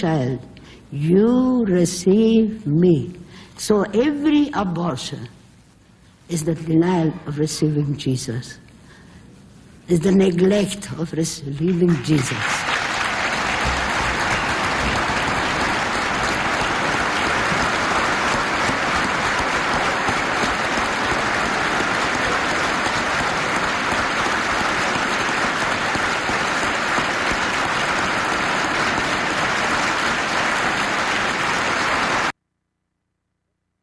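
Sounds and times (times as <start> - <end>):
speech: 0.0 - 5.4, 6.3 - 8.6, 9.9 - 12.6
audience applause: 12.2 - 32.3.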